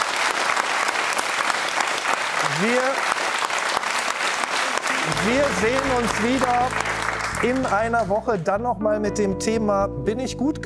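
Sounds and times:
audience applause: 0:00.0 - 0:08.4
speech: 0:02.6 - 0:03.1, 0:05.2 - 0:10.6.

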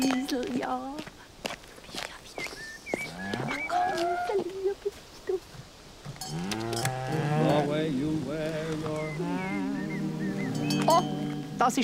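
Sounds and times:
speech: 0:00.0 - 0:01.1, 0:11.7 - 0:11.8
cow mooing in long low bellows: 0:03.1 - 0:04.4, 0:06.2 - 0:11.8.

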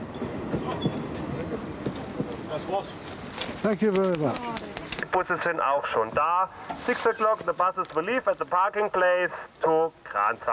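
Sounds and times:
thin high-pitched wheel squeals: 0:00.0 - 0:02.1
narrow-gauge steam train pulling in: 0:00.0 - 0:04.5
speech: 0:02.6 - 0:03.0, 0:03.6 - 0:04.6, 0:05.2 - 0:10.5.

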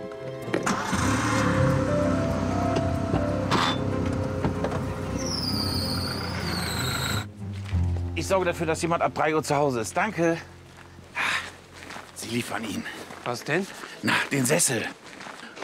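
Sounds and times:
car engine starting: 0:00.6 - 0:08.7
high squealing whines: 0:04.7 - 0:07.3
speech: 0:08.2 - 0:10.5, 0:12.3 - 0:15.0.

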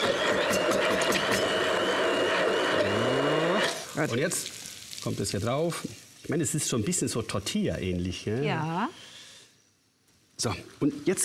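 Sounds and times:
immersion blender running: 0:00.0 - 0:04.0
speech: 0:04.0 - 0:09.1, 0:10.4 - 0:11.2.

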